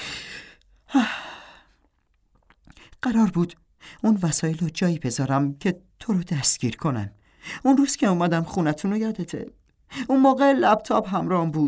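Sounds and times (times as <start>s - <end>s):
deep breath: 0.0s - 1.8s
speech: 0.9s - 1.2s, 3.1s - 11.6s.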